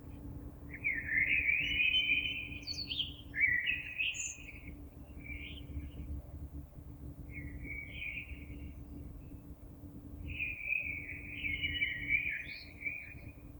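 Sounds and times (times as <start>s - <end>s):
common blackbird singing fluty warbling phrases: 0.7s - 5.7s, 7.3s - 8.7s, 10.3s - 13.3s.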